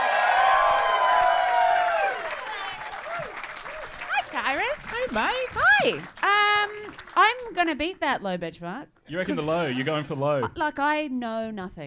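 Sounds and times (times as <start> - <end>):
studio audience cheering and applauding a contestant at a live Christmas show: 0.0 - 7.4
speech: 5.2 - 6.2, 7.5 - 11.8.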